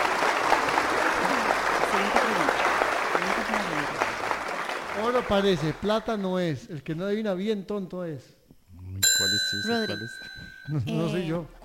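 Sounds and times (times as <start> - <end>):
applause: 0.0 - 6.2
speech: 5.1 - 8.4, 9.5 - 11.6.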